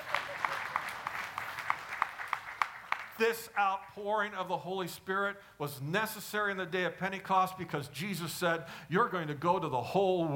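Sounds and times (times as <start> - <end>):
small audience clapping: 0.0 - 4.1
speech: 3.2 - 10.3.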